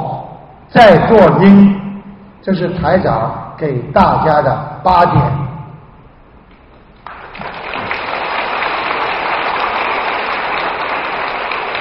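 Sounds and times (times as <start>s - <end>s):
speech: 0.8s - 1.8s, 2.4s - 5.4s
audience applause: 7.0s - 11.7s.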